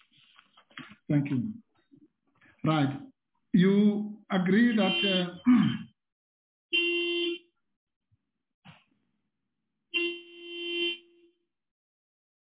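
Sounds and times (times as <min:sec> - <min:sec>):
speech: 0:01.1 - 0:01.7, 0:02.6 - 0:05.8
car horn honks: 0:04.6 - 0:05.5, 0:06.7 - 0:07.5, 0:09.9 - 0:11.3.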